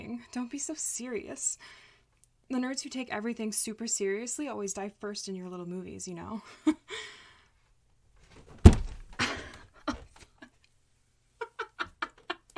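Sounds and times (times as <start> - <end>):
speech: 0.2 - 1.9, 2.5 - 7.2
thud of jumping: 8.3 - 9.3
head hitting ceiling: 8.3 - 9.4.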